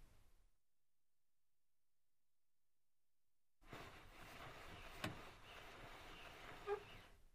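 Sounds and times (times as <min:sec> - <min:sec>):
car glass window lowered and raised manually: 0:03.7 - 0:07.1.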